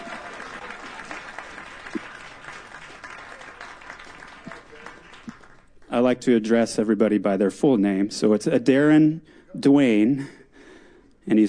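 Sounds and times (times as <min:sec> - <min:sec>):
audience applause: 0:00.0 - 0:05.8
speech: 0:06.0 - 0:10.4, 0:11.3 - 0:11.4.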